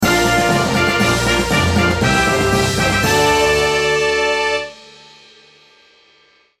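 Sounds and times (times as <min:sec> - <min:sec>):
fantasy jingle: 0:00.0 - 0:05.0.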